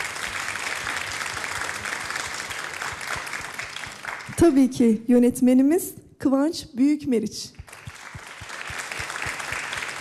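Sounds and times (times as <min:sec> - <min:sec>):
audience applause: 0:00.0 - 0:04.4, 0:07.7 - 0:09.9
speech: 0:04.4 - 0:07.6.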